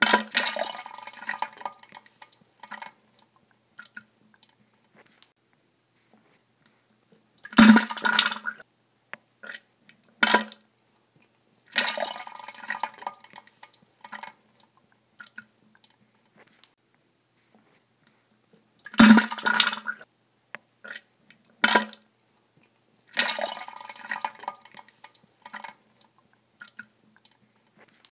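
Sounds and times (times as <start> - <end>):
person defecating: 0.0 - 3.0, 7.4 - 8.6, 9.4 - 10.6, 11.7 - 14.4, 18.8 - 20.1, 20.8 - 22.1, 23.1 - 25.9.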